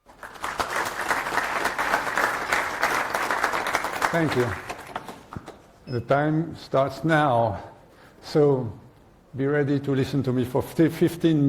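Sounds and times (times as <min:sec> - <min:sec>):
conference audience applause in Brussels: 0:00.0 - 0:05.6
speech: 0:04.1 - 0:04.7, 0:05.9 - 0:11.4.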